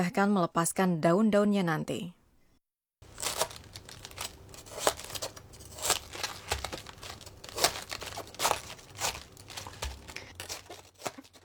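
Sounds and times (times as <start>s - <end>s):
speech: 0.0s - 2.2s
knife cutting into the hard core of a cabbage: 3.0s - 11.4s.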